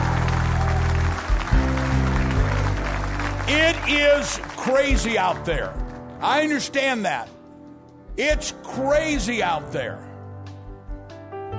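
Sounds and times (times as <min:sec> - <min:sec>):
audience applause: 0:00.0 - 0:05.6
sustained organ or keyboard chords: 0:00.0 - 0:06.8
speech: 0:03.9 - 0:07.4, 0:08.2 - 0:10.1.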